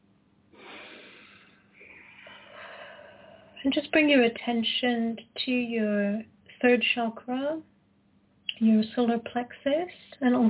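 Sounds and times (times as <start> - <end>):
slow deep breathing in and out in a guided meditation: 0.5 - 3.6
speech: 3.6 - 7.7, 8.6 - 10.4.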